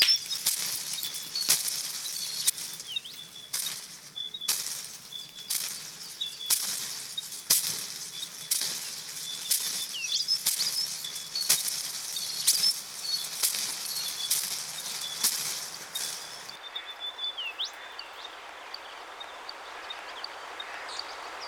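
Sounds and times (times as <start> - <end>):
small birds chirping: 0.0 - 21.4.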